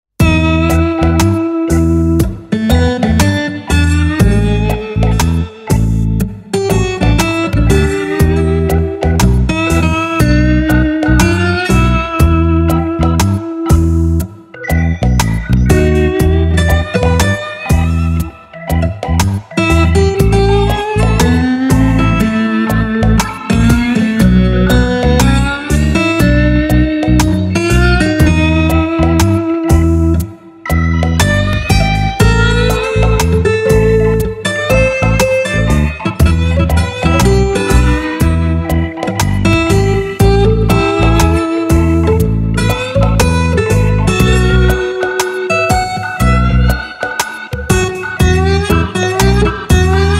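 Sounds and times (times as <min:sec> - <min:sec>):
country music jam: 0:00.2 - 0:50.1.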